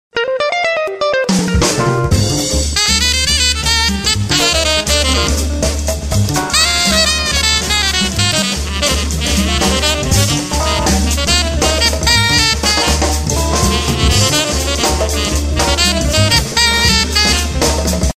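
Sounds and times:
jazz bar ambience: 0:00.1 - 0:18.1.

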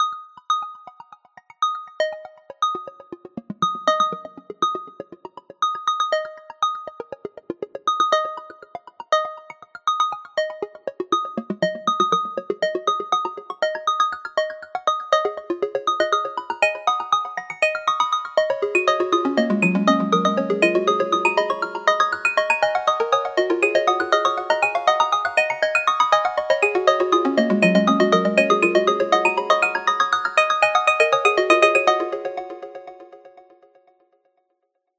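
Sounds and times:
alarm ringtone: 0:00.0 - 0:33.3.

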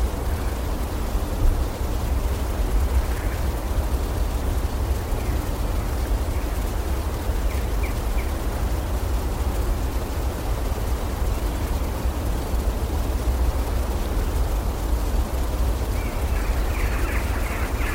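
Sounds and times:
forest creek: 0:00.0 - 0:17.9.

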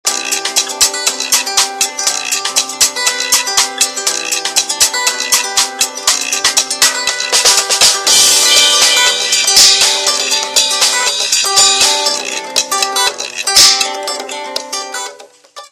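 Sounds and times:
jam session: 0:00.1 - 0:15.7.

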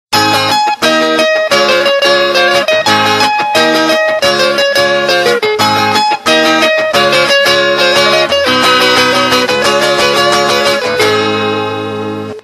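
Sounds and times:
guitar: 0:00.1 - 0:12.4.

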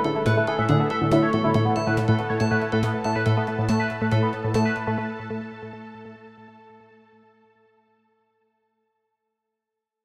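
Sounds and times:
ringtone: 0:00.0 - 0:04.8.

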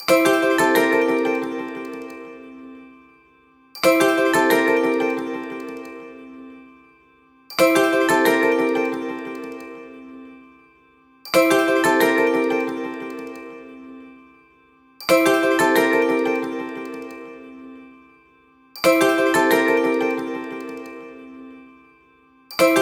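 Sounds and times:
ringtone: 0:00.0 - 0:02.6, 0:03.8 - 0:06.4, 0:07.5 - 0:10.2, 0:11.3 - 0:13.9, 0:15.1 - 0:17.6, 0:18.8 - 0:21.5, 0:22.5 - 0:22.8.

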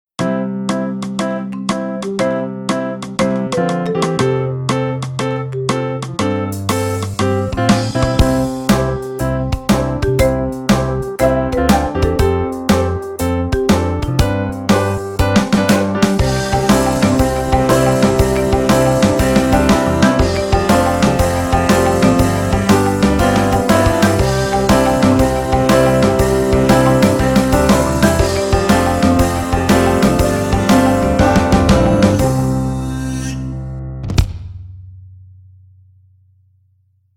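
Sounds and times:
kids mini movie music: 0:00.2 - 0:33.8.

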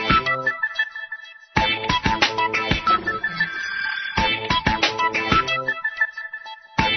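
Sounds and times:
tone: 0:00.2 - 0:06.8.

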